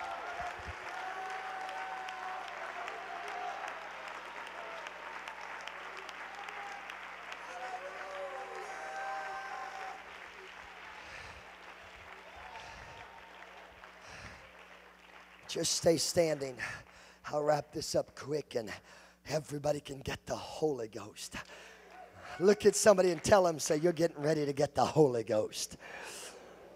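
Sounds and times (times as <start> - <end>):
audience shouting: 0.0 - 11.0
audience clapping: 0.0 - 17.8, 21.8 - 24.6
speech: 15.5 - 21.6, 22.4 - 26.2.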